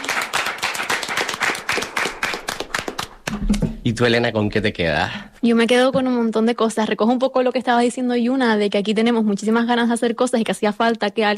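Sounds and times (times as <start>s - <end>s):
applause for the technical team: 0.0s - 3.7s
speech: 3.9s - 11.3s.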